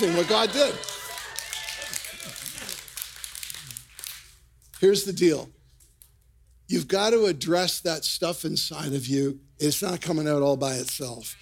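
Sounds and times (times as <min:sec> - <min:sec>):
speech: 0:00.0 - 0:01.0, 0:04.8 - 0:05.6, 0:06.7 - 0:11.4
crowd clapping in church: 0:00.0 - 0:04.4.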